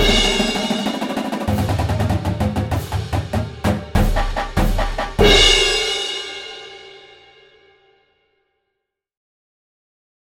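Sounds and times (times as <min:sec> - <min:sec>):
percussion: 0:00.0 - 0:07.6.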